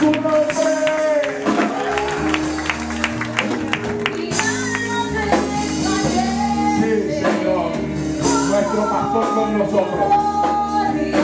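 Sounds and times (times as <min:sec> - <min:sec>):
audience applauding: 0:00.0 - 0:05.0
music with deep bass line and held keyboard tones: 0:00.0 - 0:11.2.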